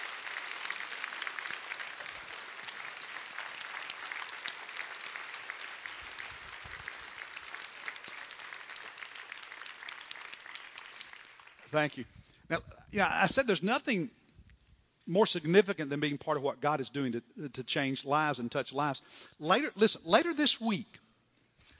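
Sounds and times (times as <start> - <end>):
standing ovation applause: 0.0 - 11.9
speech: 11.7 - 14.2, 15.1 - 21.0.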